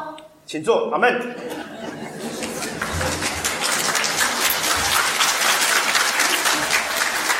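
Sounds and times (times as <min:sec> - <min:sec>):
speech: 0:00.6 - 0:01.4
laughter: 0:01.3 - 0:04.6
audience applause: 0:02.2 - 0:07.3.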